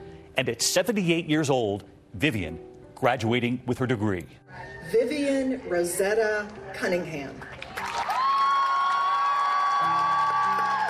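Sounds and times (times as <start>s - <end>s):
speech: 0.4s - 7.5s
family cheering at graduation: 7.7s - 10.8s
high sustained whoop: 8.1s - 10.8s.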